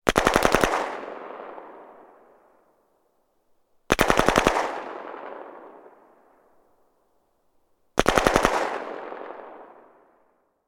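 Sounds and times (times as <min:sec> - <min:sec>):
AK-47 gunshots: 0:00.0 - 0:01.7, 0:03.9 - 0:05.7, 0:08.0 - 0:09.8.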